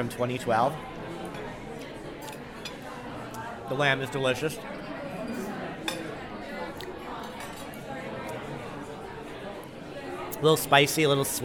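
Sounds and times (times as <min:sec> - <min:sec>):
speech: 0:00.0 - 0:01.0, 0:03.7 - 0:05.4, 0:10.4 - 0:11.4
murmur of chatter: 0:00.0 - 0:11.4
cutlery clinking on plates during a meal of glazed lamb chops: 0:01.2 - 0:02.8, 0:05.3 - 0:06.2, 0:07.2 - 0:07.8.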